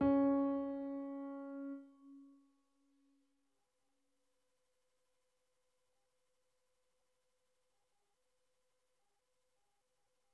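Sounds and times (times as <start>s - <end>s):
high piano: 0.0s - 2.0s.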